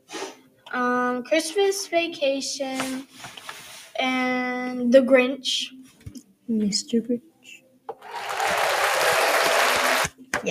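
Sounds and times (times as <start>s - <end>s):
speech: 0.7s - 3.4s, 4.0s - 5.8s, 6.5s - 7.3s
applause sound effect from a soundboard: 8.0s - 10.1s.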